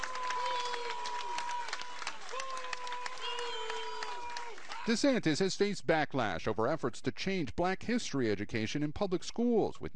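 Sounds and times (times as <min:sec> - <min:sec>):
crowd booing: 0:00.0 - 0:05.1
speech: 0:04.9 - 0:09.9.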